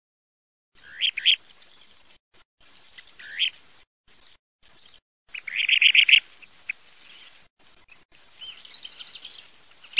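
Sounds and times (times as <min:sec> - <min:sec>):
Kentish plover high calls: 0:00.8 - 0:02.0, 0:02.9 - 0:03.6, 0:05.3 - 0:09.9.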